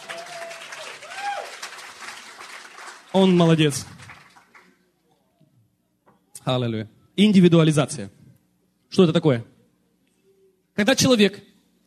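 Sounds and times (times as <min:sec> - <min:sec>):
audience applauding a translator at a church gathering: 0:00.0 - 0:04.8
speech: 0:03.1 - 0:04.0, 0:06.5 - 0:08.2, 0:09.0 - 0:09.5, 0:10.8 - 0:11.5.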